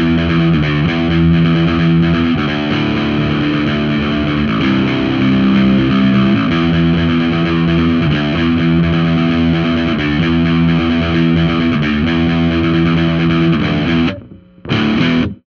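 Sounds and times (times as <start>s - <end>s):
overdriven bass guitar: 0.0s - 15.4s.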